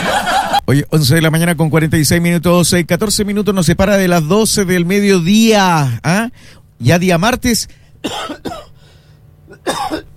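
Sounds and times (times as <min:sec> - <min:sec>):
laughter: 0:00.0 - 0:00.6
speech: 0:00.7 - 0:08.7, 0:09.6 - 0:10.1
person with a cold coughing: 0:08.0 - 0:08.8, 0:09.5 - 0:10.1.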